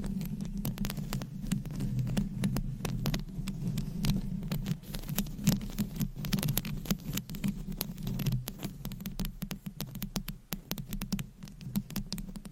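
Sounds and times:
scratching on a microphone: 0:00.0 - 0:12.5.

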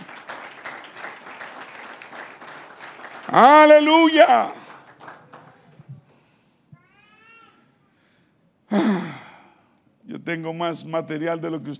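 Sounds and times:
audience applause: 0:00.0 - 0:05.9
speech: 0:03.3 - 0:04.6, 0:10.3 - 0:11.7.

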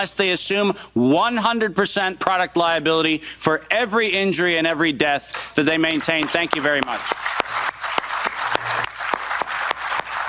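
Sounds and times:
speech: 0:00.0 - 0:07.4
audience applause: 0:05.8 - 0:10.2.

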